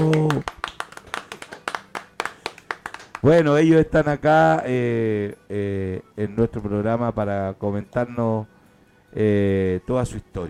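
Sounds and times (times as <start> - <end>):
applause: 0.0 - 3.6
speech: 3.2 - 8.5, 9.1 - 10.4.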